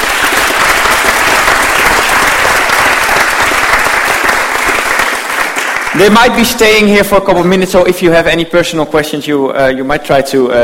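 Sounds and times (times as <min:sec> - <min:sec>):
audience applauding: 0:00.0 - 0:06.6
speech: 0:06.0 - 0:10.6.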